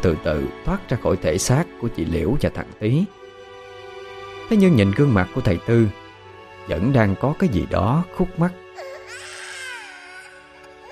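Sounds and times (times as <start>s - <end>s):
speech: 0.0s - 3.2s, 4.5s - 6.0s, 6.7s - 8.6s
high wavering mournful cry: 8.7s - 10.9s.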